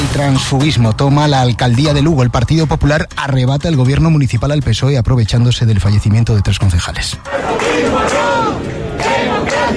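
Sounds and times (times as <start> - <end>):
speech: 0.1 - 8.3
crowd shouting protest chants: 7.3 - 9.7.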